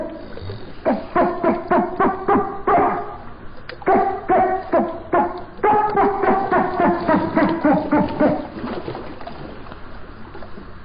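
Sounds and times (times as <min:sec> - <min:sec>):
dolphin chatter: 0:00.0 - 0:08.5.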